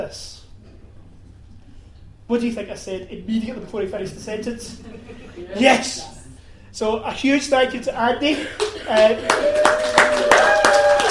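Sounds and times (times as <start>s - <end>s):
speech: 0.0s - 0.4s, 2.3s - 6.2s, 6.8s - 10.6s
laughter: 3.3s - 6.2s, 8.2s - 9.7s
audience clapping at an event: 8.6s - 11.0s.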